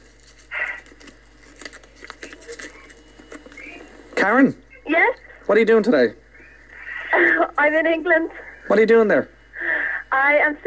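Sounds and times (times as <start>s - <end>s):
scrunched up paper being handled: 0.0s - 3.8s
speech: 4.2s - 6.2s, 7.6s - 9.4s, 10.2s - 10.6s.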